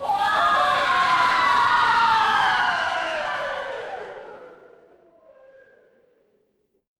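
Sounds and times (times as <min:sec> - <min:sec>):
crowd cheering: 0:00.0 - 0:05.4.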